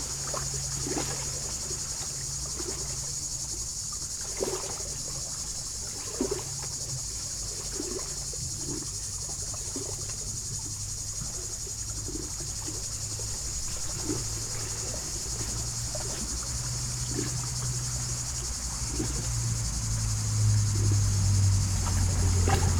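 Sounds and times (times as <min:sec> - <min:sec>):
cicadas buzzing in poplars at the water's edge of Lac du Bourget: 0:00.0 - 0:22.7.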